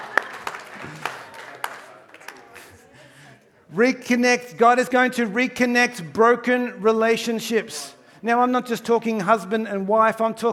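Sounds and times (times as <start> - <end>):
audience round of applause: 0.0 - 2.9
speech: 3.7 - 10.5.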